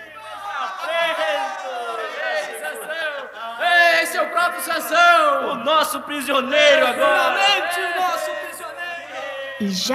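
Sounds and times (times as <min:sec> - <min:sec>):
crowd of enemies shouting with joy: 0:00.0 - 0:04.4, 0:06.5 - 0:09.7
speech: 0:04.5 - 0:08.4, 0:09.6 - 0:09.9.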